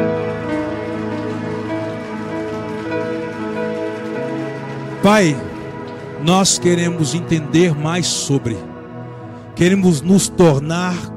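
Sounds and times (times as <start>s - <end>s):
audience applauding: 0.0s - 7.4s
speech: 5.0s - 5.5s, 6.2s - 8.7s, 9.6s - 11.1s.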